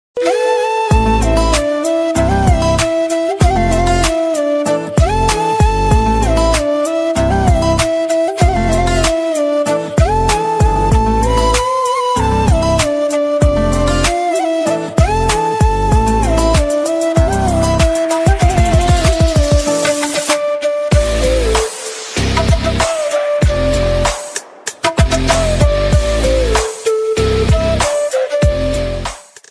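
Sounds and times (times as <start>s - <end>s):
sad flute ringtone: 0.2s - 29.0s.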